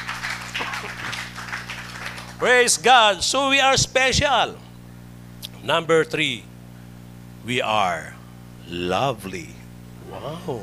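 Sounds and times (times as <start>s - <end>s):
church congregation clapping in praise of God: 0.0s - 2.8s
speech: 2.4s - 4.6s, 5.6s - 6.5s, 7.4s - 10.6s.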